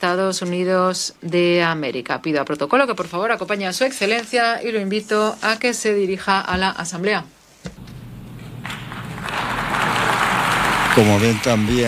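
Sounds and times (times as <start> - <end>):
speech: 0.0 - 7.8, 11.0 - 11.8
crowd applause: 8.3 - 11.8.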